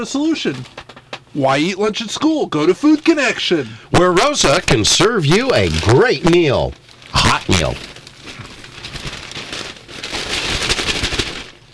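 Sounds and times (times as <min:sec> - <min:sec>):
speech: 0:00.0 - 0:07.9
newspaper pages shuffling: 0:00.2 - 0:00.9, 0:04.2 - 0:11.7.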